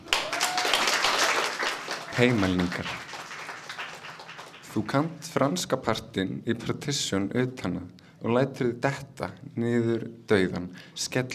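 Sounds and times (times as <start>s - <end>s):
audience applause: 0.0s - 5.1s
speech: 2.2s - 3.1s, 4.7s - 11.3s.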